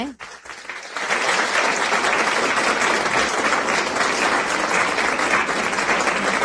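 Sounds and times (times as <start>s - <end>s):
applause: 0.0s - 6.4s.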